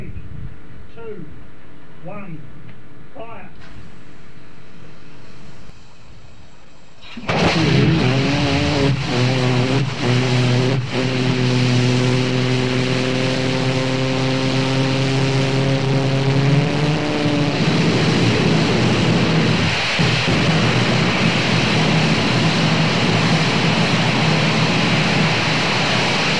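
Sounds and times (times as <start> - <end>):
Ausroc 2 engine firing: 6.9 - 26.3.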